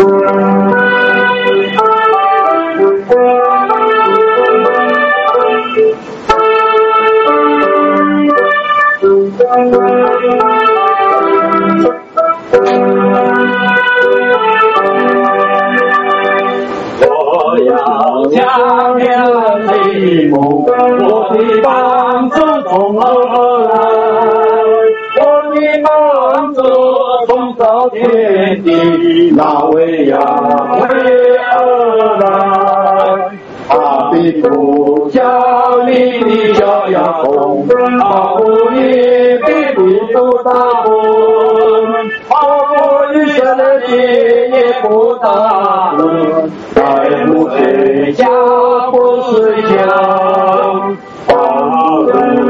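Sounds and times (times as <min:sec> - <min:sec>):
hymn: 0:00.2 - 0:52.4.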